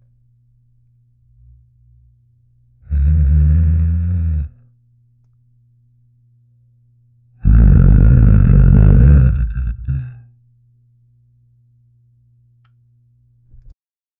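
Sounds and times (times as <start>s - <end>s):
loud bloated stomach gurgling: 2.9s - 4.5s, 7.4s - 10.2s.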